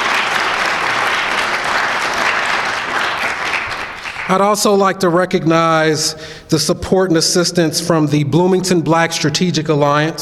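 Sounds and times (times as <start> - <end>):
audience applause: 0.0 - 4.6
speech: 4.3 - 10.2.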